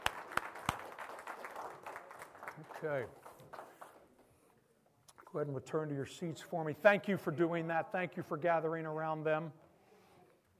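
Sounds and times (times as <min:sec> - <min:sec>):
church congregation hand clapping during a morning service: 0:00.0 - 0:04.2
speech: 0:02.8 - 0:03.2, 0:05.3 - 0:09.6.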